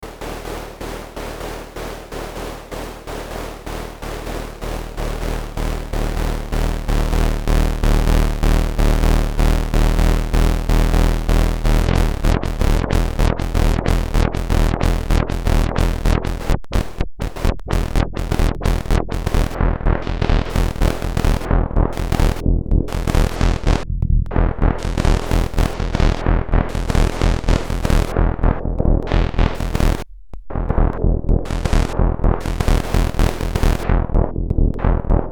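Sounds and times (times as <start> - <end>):
bass noise: 0.0 - 35.3.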